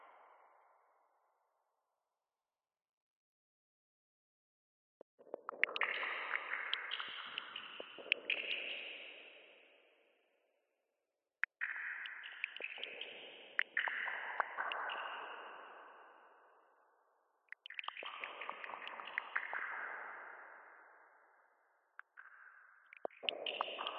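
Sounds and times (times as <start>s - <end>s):
sparse water drops dripping with echo in sewers: 5.2s - 9.6s, 11.4s - 16.6s, 17.5s - 23.9s.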